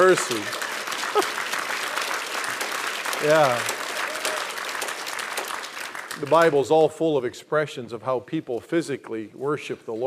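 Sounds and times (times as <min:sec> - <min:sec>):
speech: 0:00.0 - 0:00.6, 0:01.2 - 0:01.4, 0:03.2 - 0:03.7, 0:06.2 - 0:10.0
audience clapping: 0:00.0 - 0:07.0.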